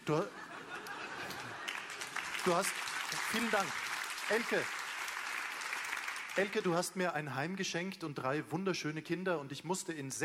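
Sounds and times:
laughter: 0:00.0 - 0:02.7
speech: 0:00.1 - 0:00.4, 0:02.4 - 0:04.8, 0:06.4 - 0:10.2
audience applause: 0:01.1 - 0:06.8.

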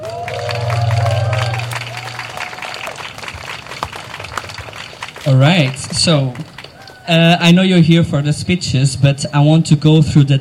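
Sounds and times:
audience applause: 0:00.0 - 0:07.2
speech: 0:05.2 - 0:06.5, 0:07.1 - 0:10.3.

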